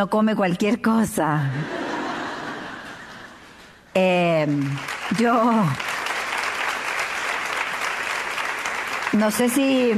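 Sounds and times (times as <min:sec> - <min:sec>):
speech: 0:00.0 - 0:01.8, 0:04.0 - 0:05.9, 0:09.2 - 0:09.9
laughter: 0:01.5 - 0:03.6
audience applause: 0:04.6 - 0:09.9.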